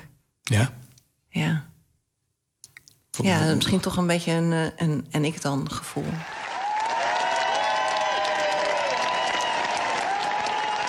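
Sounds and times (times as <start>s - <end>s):
speech: 0.5s - 1.4s, 3.2s - 6.4s
large crowd in Amsterdam applauding outside a front door as a farewell: 6.0s - 10.8s.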